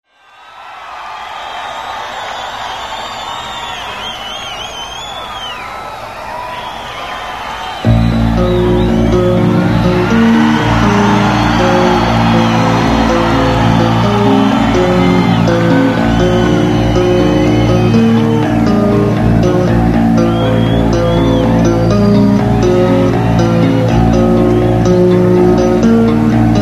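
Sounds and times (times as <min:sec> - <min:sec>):
bass solo: 0:07.9 - 0:26.6.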